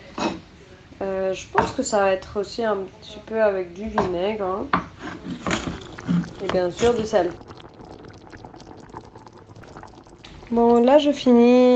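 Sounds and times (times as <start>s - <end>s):
speech: 1.3s - 5.4s, 6.2s - 7.5s, 10.5s - 11.7s
hot water poured into cooking pot: 5.0s - 11.7s.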